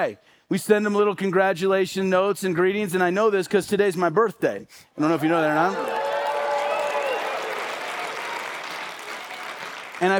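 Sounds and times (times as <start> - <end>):
speech: 0.0 - 6.0, 10.0 - 10.1
audience applauding: 5.6 - 10.1.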